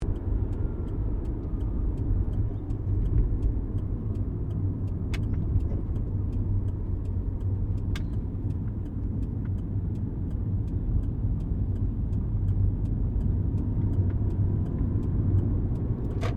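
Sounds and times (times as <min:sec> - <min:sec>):
Subaru Liberty interior driving and turning: 0:00.0 - 0:16.3.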